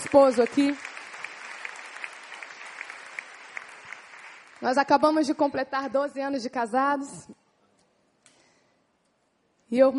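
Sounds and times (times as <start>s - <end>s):
audience applause: 0.0s - 4.6s
speech: 0.1s - 0.8s, 4.6s - 7.4s, 9.7s - 9.9s.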